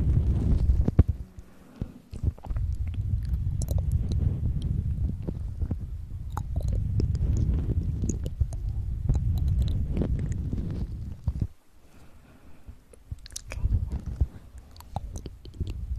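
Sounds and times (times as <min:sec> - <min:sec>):
low rumbling undertone: 0:00.0 - 0:15.9
wet mouth clicks, smacks and chewing: 0:02.1 - 0:05.4, 0:06.2 - 0:11.6, 0:12.9 - 0:15.9.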